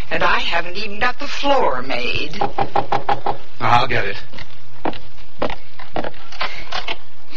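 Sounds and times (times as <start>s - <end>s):
speech: 0.2s - 4.5s
knocking on a wooden door: 2.4s - 3.4s.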